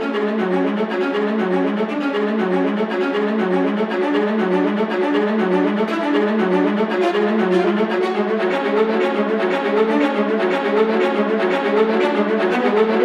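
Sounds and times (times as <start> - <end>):
viola: 0.0 - 13.0.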